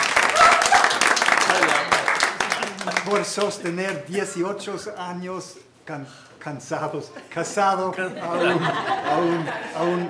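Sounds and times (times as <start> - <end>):
audience applause for the speaker's wife at a pastor's talk: 0.0 - 3.7
speech: 3.1 - 10.0
laughter: 7.0 - 10.0.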